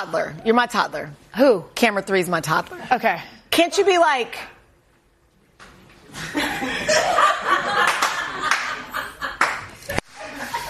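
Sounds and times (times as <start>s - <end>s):
speech: 0.0s - 4.6s
laughter: 6.1s - 10.6s
hand clap: 7.8s - 8.8s, 9.4s - 9.8s.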